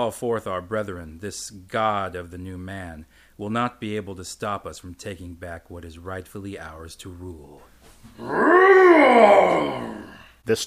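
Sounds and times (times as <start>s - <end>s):
speech: 0.0s - 10.6s
monster roaring: 8.2s - 10.2s.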